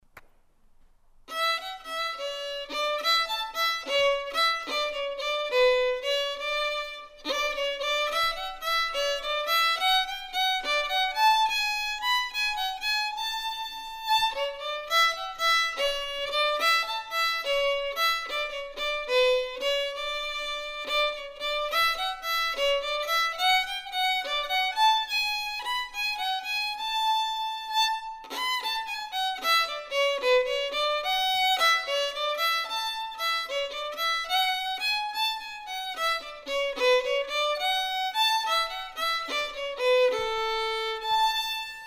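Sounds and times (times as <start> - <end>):
jig on fiddle: 1.3 - 41.8.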